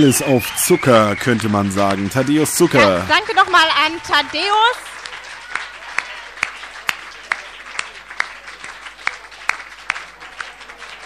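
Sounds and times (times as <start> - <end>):
speech: 0.0 - 4.9
audience applause: 0.0 - 11.0.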